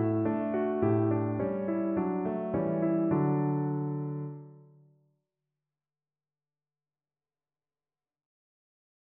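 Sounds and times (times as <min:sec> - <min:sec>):
piano invention: 0:00.0 - 0:04.7.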